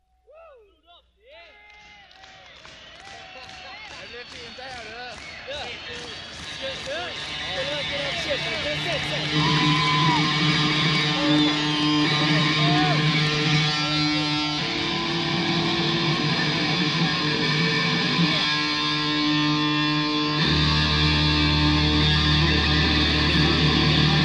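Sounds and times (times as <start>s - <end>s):
guitar solo: 7.0s - 24.2s.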